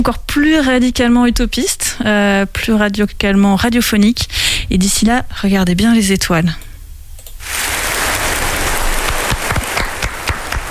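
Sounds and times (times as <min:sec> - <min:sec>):
speech: 0:00.0 - 0:06.7
applause: 0:07.5 - 0:10.6.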